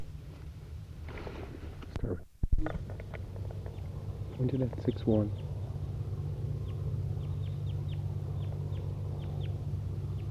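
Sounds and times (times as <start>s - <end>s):
steady low droning hum: 0.0s - 10.2s
speech: 2.0s - 2.8s, 4.4s - 5.5s
birds clucking: 2.8s - 10.2s.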